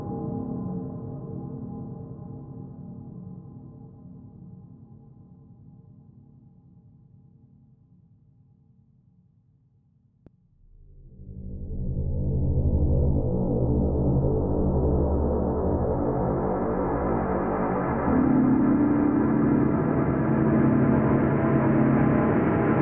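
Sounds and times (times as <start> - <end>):
ambience: 10.6 - 22.7.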